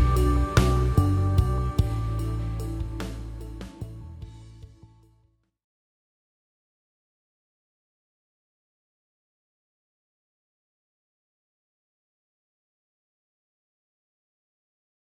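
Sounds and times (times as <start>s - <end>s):
rhythm: 0.0s - 5.0s.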